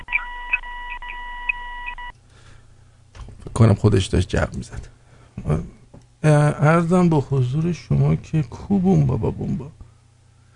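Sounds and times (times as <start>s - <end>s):
electronic beeping like operating room monitor: 0.0s - 2.1s
speech: 3.6s - 9.8s.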